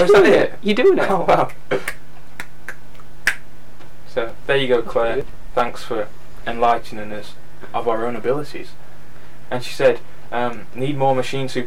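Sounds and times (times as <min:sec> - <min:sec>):
speech: 0:00.0 - 0:02.0, 0:04.2 - 0:08.8, 0:09.5 - 0:11.6
two people clapping alternately: 0:01.4 - 0:03.5.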